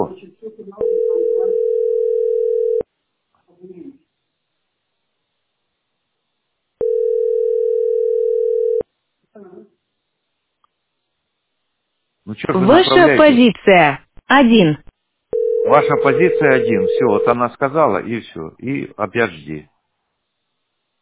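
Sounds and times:
telephone ringback tone while waiting for an operator: 0.8s - 2.8s, 6.8s - 8.9s, 15.3s - 17.4s
speech: 12.4s - 14.9s, 15.7s - 19.7s.

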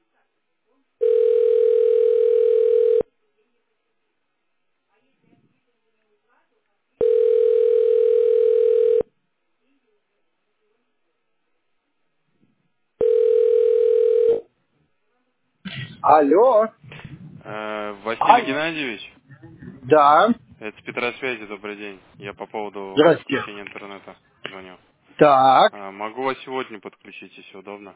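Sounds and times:
telephone ringback tone: 1.0s - 3.1s, 7.0s - 9.1s, 13.0s - 14.4s
speech: 16.1s - 16.8s, 17.5s - 19.1s, 19.9s - 27.9s.

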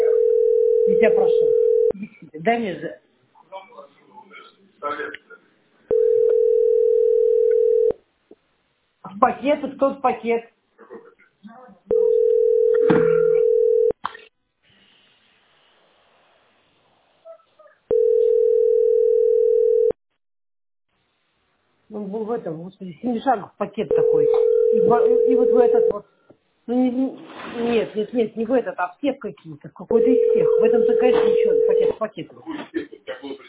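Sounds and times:
telephone line tone during a call: 0.0s - 1.9s, 5.9s - 7.9s, 11.9s - 14.0s, 17.9s - 20.0s, 23.9s - 25.9s, 30.0s - 32.0s
speech: 1.0s - 1.6s, 2.4s - 3.0s, 9.1s - 11.7s, 21.9s - 33.4s.

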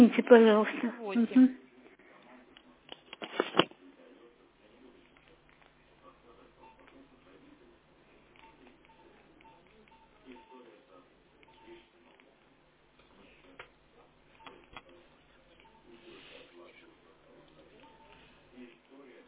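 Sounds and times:
speech: 0.0s - 1.6s
mobile phone keypad tones while dialing: 8.4s - 10.6s, 17.8s - 18.2s.

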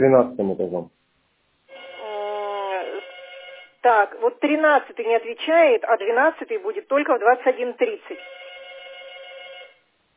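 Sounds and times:
speech: 0.0s - 1.0s, 3.8s - 8.4s
telephone ringing with an electronic ring: 1.7s - 4.9s, 7.6s - 9.9s.

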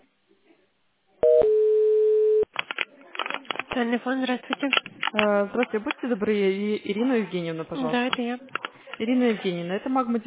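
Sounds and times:
telephone busy signal short beeps: 1.2s - 2.4s
speech: 3.8s - 10.2s.

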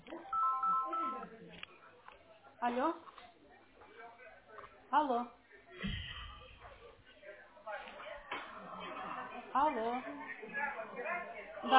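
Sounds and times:
phone ringing with incoming call: 0.2s - 1.3s
speech: 2.6s - 3.1s, 4.9s - 5.4s, 9.5s - 11.7s.

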